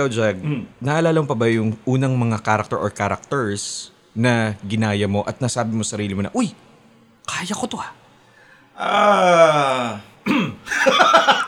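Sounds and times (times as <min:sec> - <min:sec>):
speech: 0:00.0 - 0:06.7, 0:07.3 - 0:08.0, 0:08.8 - 0:11.4
throat clearing: 0:10.2 - 0:10.7
laughter: 0:10.7 - 0:11.4.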